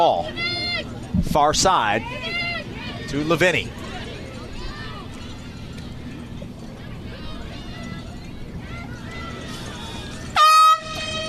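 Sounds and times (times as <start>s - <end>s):
speech: 0.0s - 0.5s, 1.2s - 2.4s, 3.1s - 3.8s
crowd murmur at a soccer match: 0.0s - 11.2s
substitution air horn blast at a soccer match: 10.4s - 11.2s.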